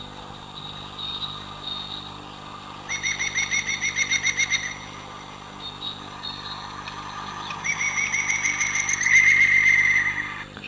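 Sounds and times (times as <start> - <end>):
woodpecker laughing call at Soto de Cantalobos: 2.8 - 10.6.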